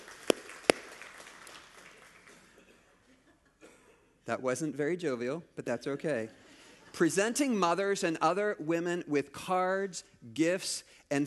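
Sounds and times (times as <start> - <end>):
sharp isolated hand claps: 0.0 - 2.6
speech: 4.3 - 6.4, 7.0 - 11.2.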